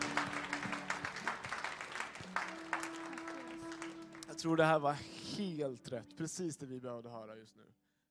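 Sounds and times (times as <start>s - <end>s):
audience applause: 0.0s - 4.7s
speech: 4.4s - 7.8s.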